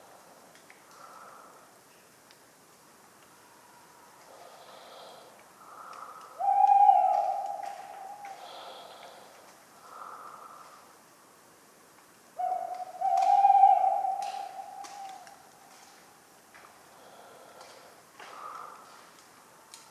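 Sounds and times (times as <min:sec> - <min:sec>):
faint ticks: 0:00.5 - 0:03.4, 0:04.1 - 0:10.8, 0:14.2 - 0:19.8
tawny owl hooting: 0:06.3 - 0:09.3, 0:12.4 - 0:15.7.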